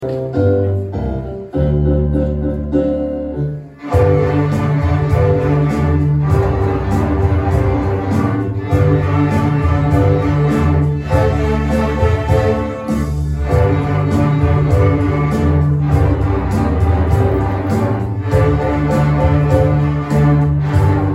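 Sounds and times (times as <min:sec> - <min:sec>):
year 2 strings performance: 0:00.0 - 0:21.1.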